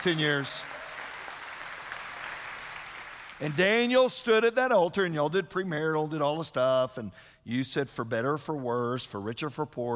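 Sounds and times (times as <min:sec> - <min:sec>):
speech: 0:00.0 - 0:00.8, 0:03.4 - 0:09.9
crowd applauding: 0:00.0 - 0:03.6.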